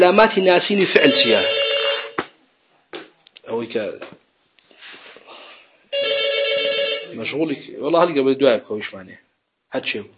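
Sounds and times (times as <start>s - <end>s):
speech: 0.0s - 1.6s, 3.6s - 4.2s, 7.2s - 10.1s
telephone ringing with an electronic ring tone: 1.0s - 2.2s, 5.9s - 7.4s.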